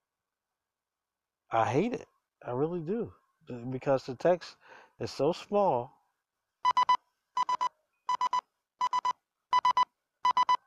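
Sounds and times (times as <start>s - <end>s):
speech: 1.5s - 6.0s
cheap smartwatch alarm beeping: 6.6s - 10.6s.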